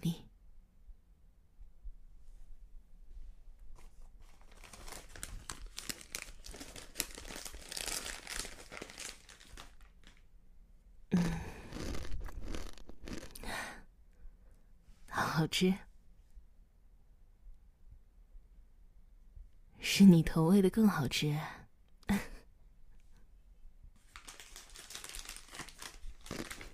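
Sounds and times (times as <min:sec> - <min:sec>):
food snack bag being opened and crinkled: 0:04.3 - 0:10.3, 0:11.2 - 0:13.5, 0:24.0 - 0:26.7
speech: 0:15.4 - 0:15.8, 0:20.2 - 0:21.6.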